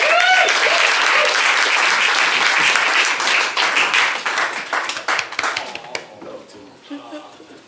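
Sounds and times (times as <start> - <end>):
studio audience applause welcoming a guest to a comedy roast: 0.0 - 6.0.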